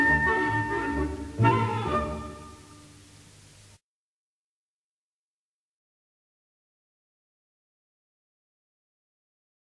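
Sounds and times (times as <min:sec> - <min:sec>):
bolero sonata music: 0:00.0 - 0:03.2.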